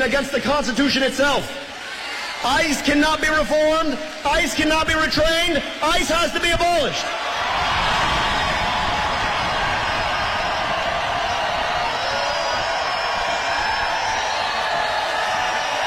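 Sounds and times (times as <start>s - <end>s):
speech: 0.0s - 1.7s, 2.4s - 7.4s
large crowd cheering at a rally: 1.2s - 4.6s, 6.8s - 15.8s.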